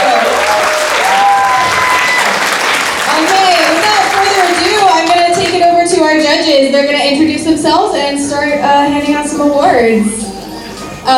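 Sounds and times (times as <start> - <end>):
audience applause: 0.0 - 5.6
speech: 6.4 - 10.2.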